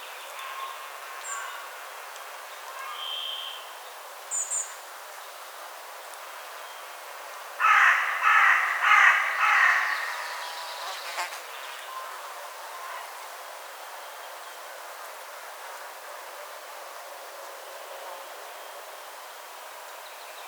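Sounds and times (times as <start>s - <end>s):
Carrion crow Corvus corone cawing: 7.6s - 10.2s.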